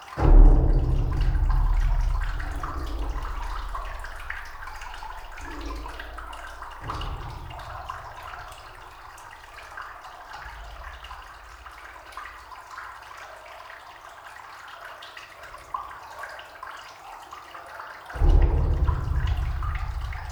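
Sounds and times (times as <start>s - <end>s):
dripping inside a glacier: 0.0s - 12.4s, 18.2s - 20.3s
water rushing and trickling inside Glacier de la Meije: 0.0s - 12.9s, 18.2s - 20.3s
deep thuds and rumbling inside a glacier: 0.2s - 9.8s, 18.2s - 20.3s.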